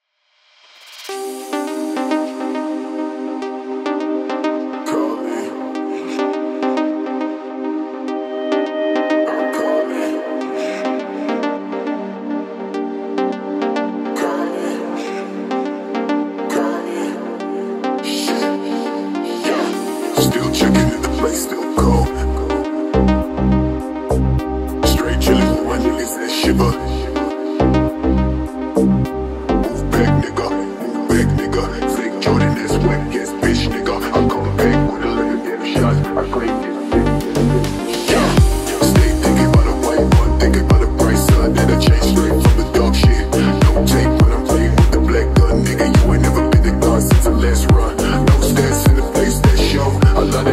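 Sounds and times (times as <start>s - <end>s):
deep house remix: 0.9s - 50.5s.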